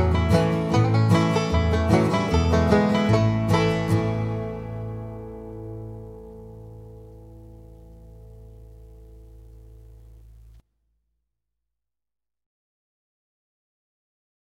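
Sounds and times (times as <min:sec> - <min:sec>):
banjo tune at 150bpm: 0:00.0 - 0:09.9.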